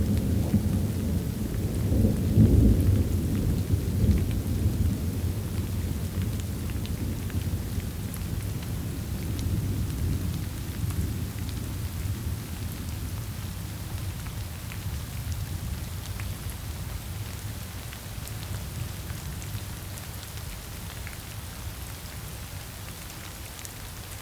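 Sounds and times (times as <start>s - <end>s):
thunder: 0.0s - 7.6s
steady rain downpour: 0.0s - 24.2s.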